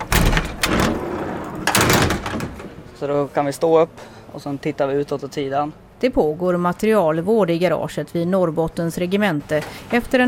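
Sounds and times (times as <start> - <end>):
heavy hatches opening on a Stridsfordon 90 combat vehicle: 0.0 - 2.9
speech: 3.0 - 10.2.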